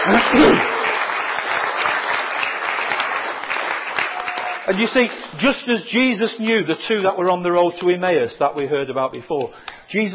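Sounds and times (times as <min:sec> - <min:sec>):
audience applause: 0:00.0 - 0:05.5
speech: 0:00.1 - 0:00.8, 0:04.7 - 0:10.1.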